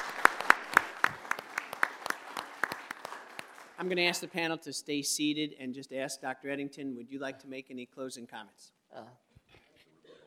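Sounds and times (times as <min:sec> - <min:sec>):
audience applause: 0:00.0 - 0:04.0
speech: 0:03.8 - 0:09.2.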